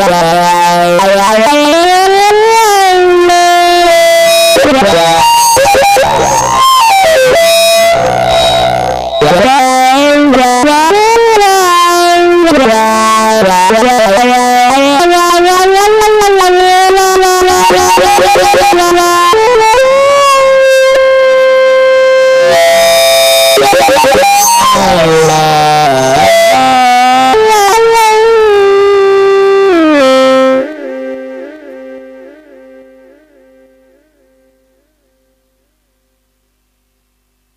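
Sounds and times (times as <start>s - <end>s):
dirty lead: 0.0s - 32.8s.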